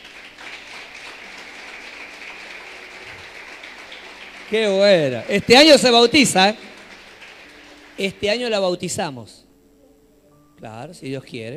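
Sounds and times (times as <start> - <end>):
audience applauding: 0.0 - 9.0
speech: 4.5 - 6.7, 8.0 - 9.4, 10.6 - 11.5.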